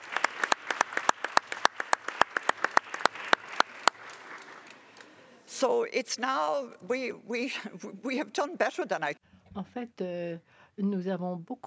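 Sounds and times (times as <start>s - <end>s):
audience applauding: 0.0s - 5.3s
speech: 5.6s - 11.6s.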